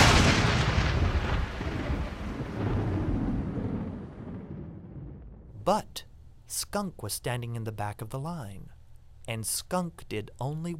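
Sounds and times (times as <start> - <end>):
thunderclap of a great storm: 0.0 - 5.6
speech: 5.7 - 10.7.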